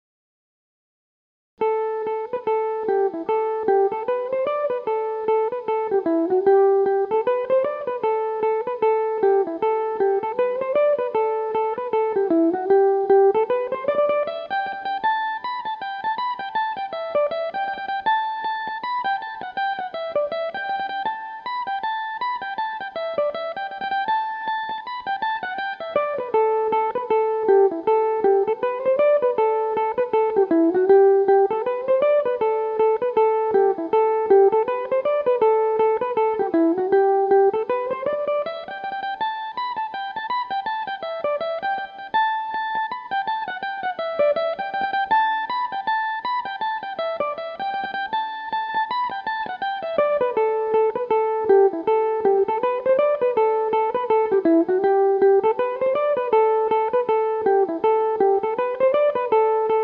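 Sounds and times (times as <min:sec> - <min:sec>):
Irish mandolin playing a reel in A dorian: 0:01.6 - 0:59.8.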